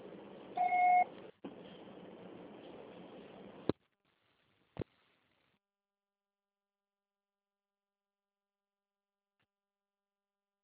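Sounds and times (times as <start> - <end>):
answering machine beep: 0.6 - 1.1.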